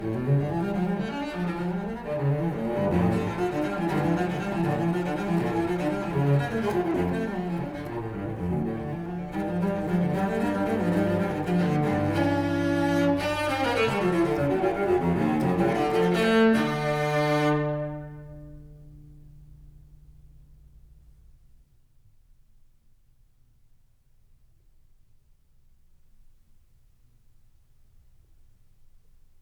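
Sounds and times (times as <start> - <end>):
solo cello playing a gigue in D minor: 0.0 - 20.3.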